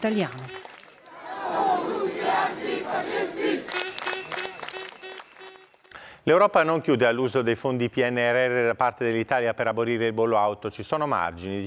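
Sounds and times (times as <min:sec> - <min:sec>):
speech: 0:00.0 - 0:00.5, 0:06.3 - 0:11.6
counter-demonstration crowd chanting slogan: 0:01.0 - 0:04.4.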